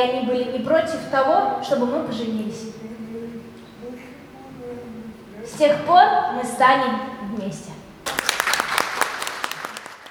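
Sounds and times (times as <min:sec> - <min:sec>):
speech: 0:00.0 - 0:03.0, 0:05.5 - 0:07.8
audience applause at a stage show: 0:08.0 - 0:10.0.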